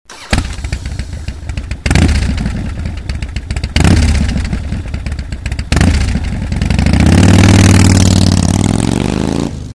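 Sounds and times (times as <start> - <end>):
motorbike starting: 0.1 - 8.8.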